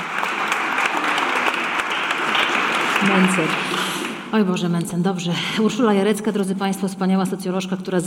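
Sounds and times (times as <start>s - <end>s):
audience applause: 0.0s - 4.3s
speech: 3.0s - 3.7s, 4.3s - 8.0s.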